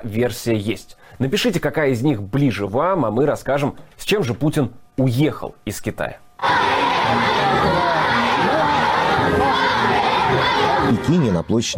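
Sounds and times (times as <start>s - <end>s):
speech: 0.0s - 7.5s, 10.4s - 11.7s
large crowd of children cheering and shouting in rehearsal: 6.4s - 11.3s.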